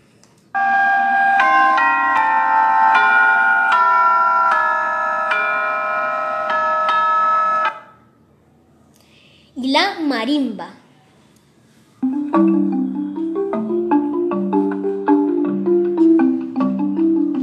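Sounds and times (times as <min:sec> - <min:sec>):
tubular bells struck: 0:00.6 - 0:07.7, 0:12.0 - 0:17.4
speech: 0:10.1 - 0:10.8.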